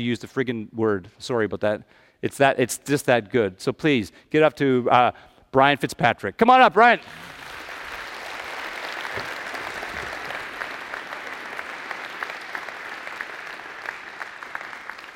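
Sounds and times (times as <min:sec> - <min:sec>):
speech: 0:00.0 - 0:07.4
audience applause: 0:07.0 - 0:15.1.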